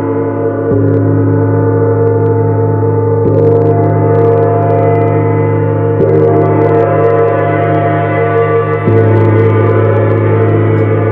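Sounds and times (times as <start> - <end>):
large gong ringing with deep hum and shimmering overtones: 0.0 - 11.1.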